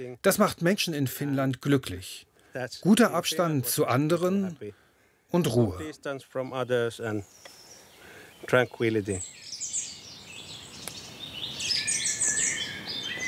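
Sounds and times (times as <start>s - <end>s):
speech: 0.0s - 7.6s, 8.5s - 9.4s
birds chirping and twittering outdoors in nature: 2.7s - 13.2s.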